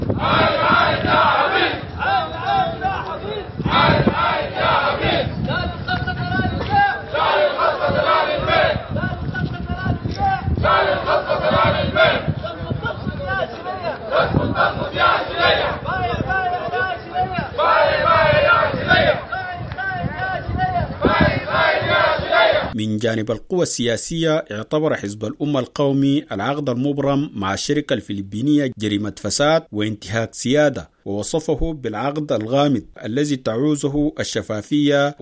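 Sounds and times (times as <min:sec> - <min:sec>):
port workers chanting slogans against privatization at a protest: 0:00.1 - 0:09.3, 0:10.1 - 0:22.7
crowd roar: 0:00.2 - 0:05.4, 0:06.8 - 0:08.9, 0:10.6 - 0:12.4, 0:13.4 - 0:22.7
speech: 0:22.8 - 0:35.2.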